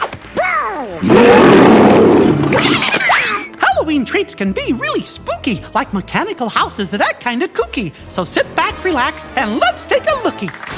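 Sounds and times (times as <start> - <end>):
beast roaring with a harsh growling bellow: 0.9 - 2.8
speech: 3.9 - 10.7.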